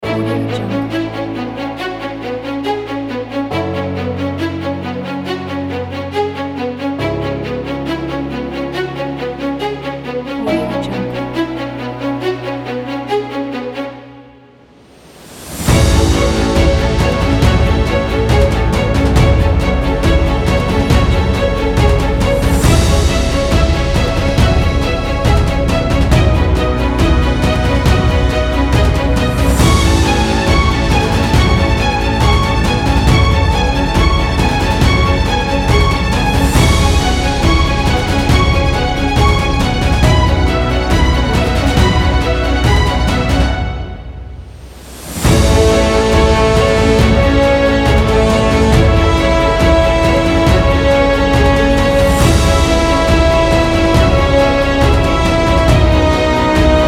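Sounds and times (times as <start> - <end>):
heroic action music: 0.0 - 56.8.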